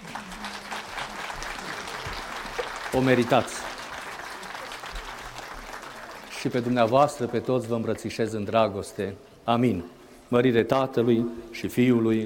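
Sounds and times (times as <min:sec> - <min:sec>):
audience applause: 0:00.0 - 0:07.4
speech: 0:02.9 - 0:03.7, 0:06.4 - 0:12.2.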